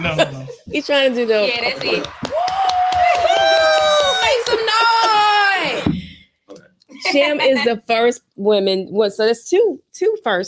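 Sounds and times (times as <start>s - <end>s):
laughter: 0.0s - 2.5s, 3.7s - 5.9s
speech: 0.0s - 2.5s, 7.1s - 10.4s
clapping: 1.6s - 5.8s
whooping cheer: 1.6s - 5.9s.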